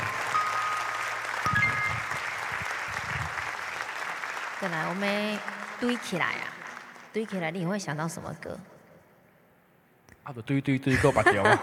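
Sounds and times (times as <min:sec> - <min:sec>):
crowd clapping: 0:00.0 - 0:07.5
speech: 0:04.6 - 0:06.5, 0:07.1 - 0:08.7, 0:10.3 - 0:11.6
laughter: 0:10.9 - 0:11.6.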